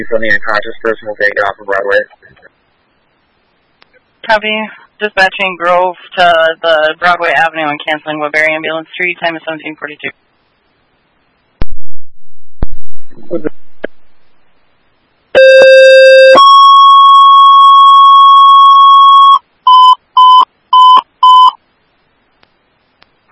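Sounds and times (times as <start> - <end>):
speech: 0.0 - 2.5, 4.2 - 10.2, 13.2 - 13.6
fire station dispatch alert tones: 15.4 - 21.6.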